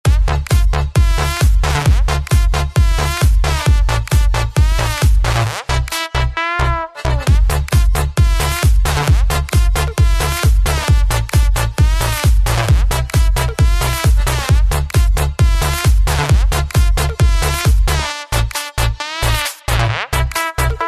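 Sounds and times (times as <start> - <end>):
club music: 0.0 - 20.8.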